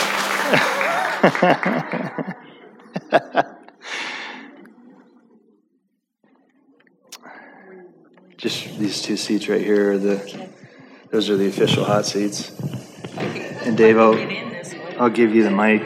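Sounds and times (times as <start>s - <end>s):
thunderous round of applause: 0.0s - 2.4s
laughter: 0.0s - 5.2s, 11.2s - 15.0s
speech: 0.5s - 2.4s, 3.1s - 3.5s, 8.4s - 15.8s.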